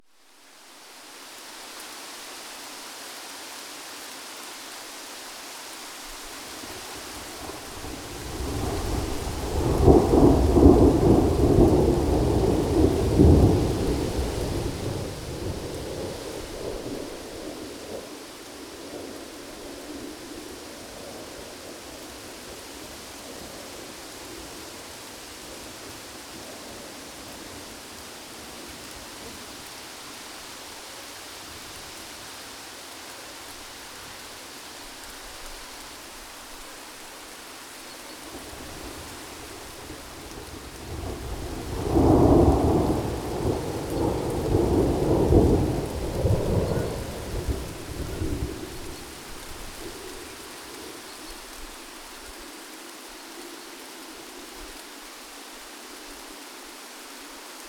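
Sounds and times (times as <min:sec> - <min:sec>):
thunderstorm: 0:06.6 - 0:21.6, 0:38.3 - 0:50.4.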